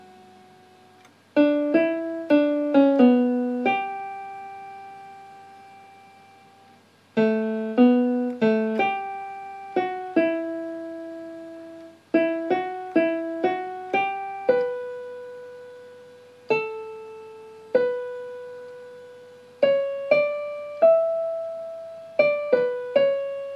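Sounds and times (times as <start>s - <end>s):
piano: 0.0s - 23.5s.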